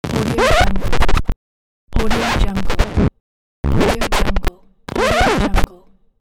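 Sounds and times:
record scratch: 0:00.0 - 0:01.4, 0:02.0 - 0:05.8.

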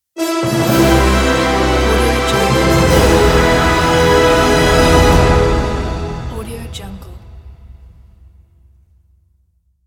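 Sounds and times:
orchestral fanfare logo: 0:00.2 - 0:07.0.

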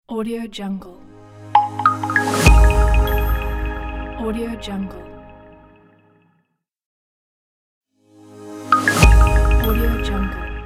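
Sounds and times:
welcome logo jingle: 0:01.1 - 0:05.7, 0:08.8 - 0:10.6.

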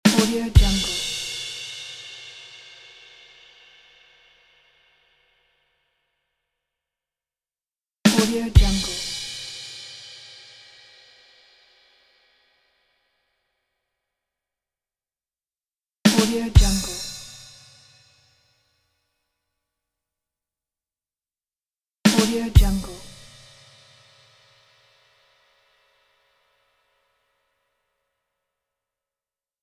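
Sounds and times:
drum rimshot with cymbal: 0:00.0 - 0:04.6, 0:08.1 - 0:12.1, 0:16.1 - 0:17.7, 0:22.1 - 0:24.6.

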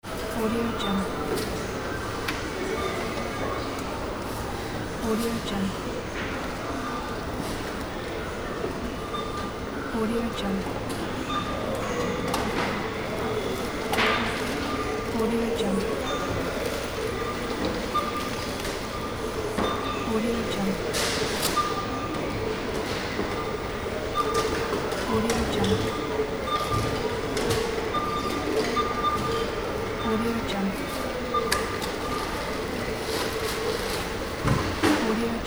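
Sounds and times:
supermarket ambience: 0:00.0 - 0:35.4.

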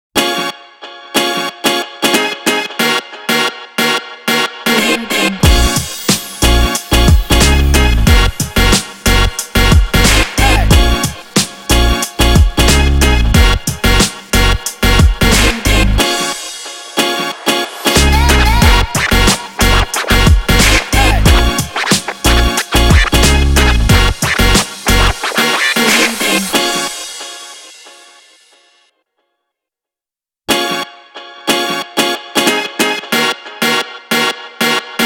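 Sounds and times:
hip hop background music: 0:00.2 - 0:28.7, 0:30.5 - 0:35.0.

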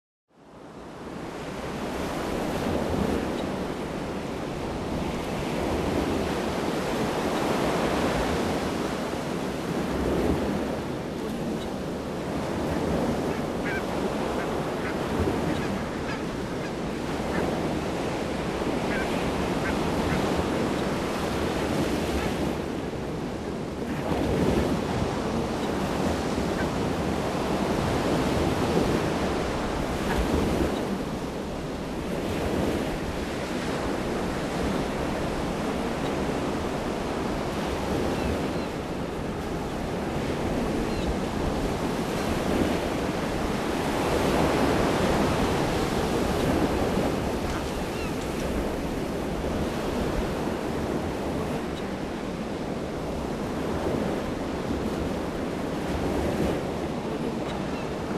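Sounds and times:
stormy sea: 0:00.3 - 0:58.1.

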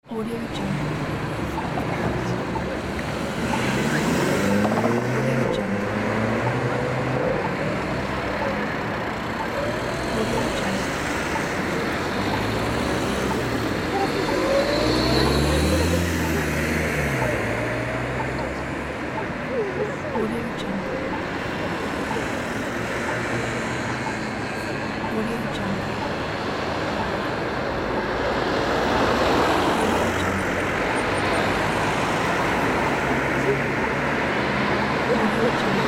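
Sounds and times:
city pedestrian crossing: 0:00.0 - 0:35.8.

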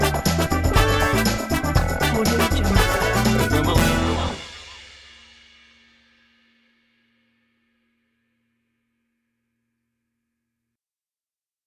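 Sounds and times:
boogie dance music: 0:00.0 - 0:04.6.

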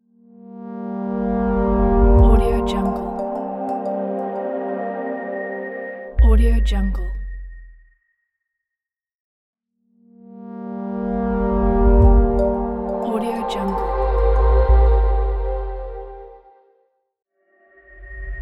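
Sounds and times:
elegant audio logo: 0:00.4 - 0:06.2, 0:10.3 - 0:16.6.

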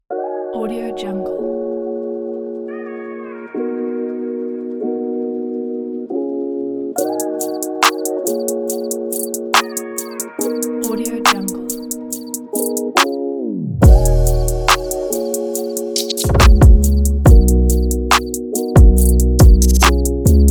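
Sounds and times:
chill trap beat: 0:07.0 - 0:13.2, 0:13.8 - 0:20.4.

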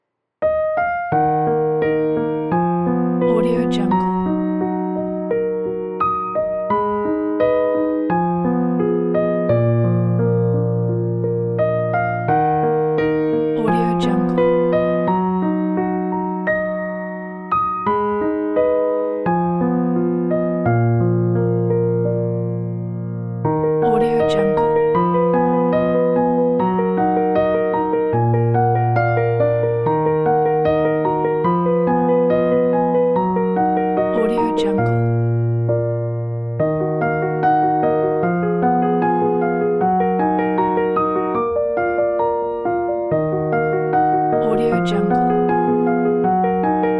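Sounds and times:
sad piano: 0:00.0 - 0:46.9.

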